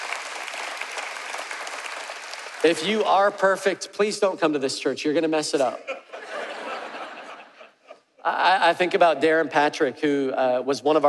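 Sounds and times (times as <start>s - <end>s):
audience applause: 0.0s - 3.0s
speech: 2.6s - 6.0s, 8.2s - 11.0s
laughter: 5.8s - 8.2s.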